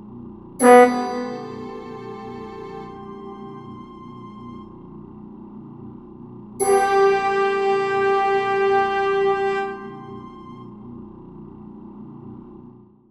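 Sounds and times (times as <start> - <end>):
pie chart legend sonification tones: 0.6 - 4.7, 6.6 - 10.7.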